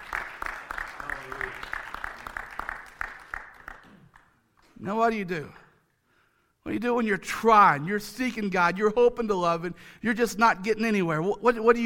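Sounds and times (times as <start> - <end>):
audience clapping: 0.0 - 4.7
speech: 4.8 - 5.6, 6.7 - 11.8.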